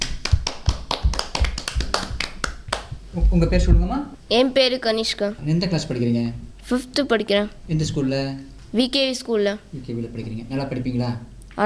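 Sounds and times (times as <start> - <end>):
group clapping hands: 0.0 - 3.0
speech: 3.2 - 11.6.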